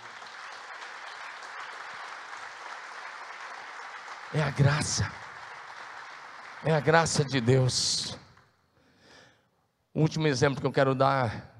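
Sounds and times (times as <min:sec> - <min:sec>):
audience applauding: 0:00.0 - 0:08.4
speech: 0:04.3 - 0:05.2, 0:06.6 - 0:08.2, 0:10.0 - 0:11.5.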